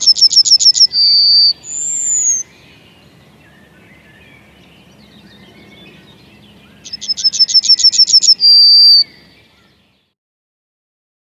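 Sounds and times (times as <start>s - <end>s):
yellowhammer singing: 0.0s - 10.2s.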